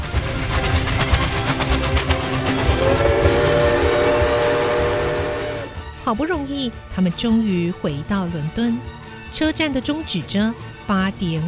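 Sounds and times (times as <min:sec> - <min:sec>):
special train running along the railway: 0:00.0 - 0:06.6
train horn or whistle: 0:02.3 - 0:05.8
speech: 0:06.1 - 0:11.4.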